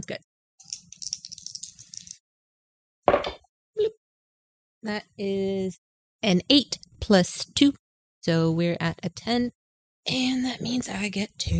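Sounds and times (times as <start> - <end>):
dice rattling and clattering: 0.7 - 2.2
speech: 4.8 - 11.5.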